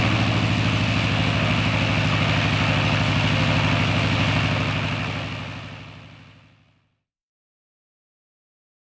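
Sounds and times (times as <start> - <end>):
propeller plane starting: 0.0 - 6.4.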